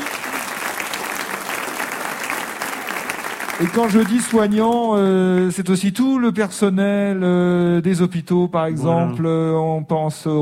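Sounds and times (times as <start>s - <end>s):
crowd applause: 0.0s - 5.5s
speech: 3.6s - 10.4s.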